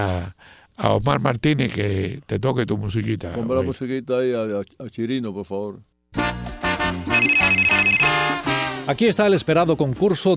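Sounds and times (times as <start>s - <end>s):
speech: 0.0s - 10.3s
music: 6.1s - 10.3s
telephone ringing effect: 7.1s - 8.8s, 10.0s - 10.3s.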